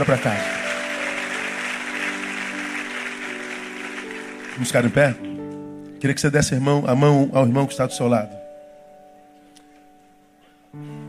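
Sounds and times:
speech: 0.0 - 0.6, 4.6 - 5.4, 6.0 - 8.4
audience applauding: 0.0 - 5.4.

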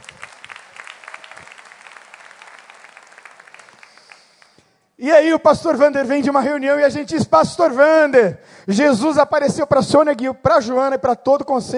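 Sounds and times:
audience applause: 0.0 - 4.6
speech: 5.0 - 11.7.

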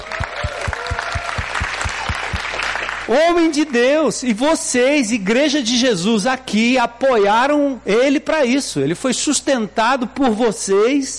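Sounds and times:
audience applause: 0.0 - 3.1
speech: 3.1 - 11.1.

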